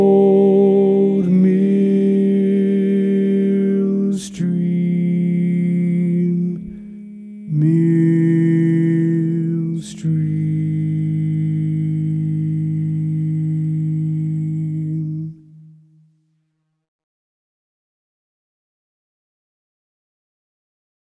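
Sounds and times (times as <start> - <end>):
baritone voice singing: 0.0 - 15.4.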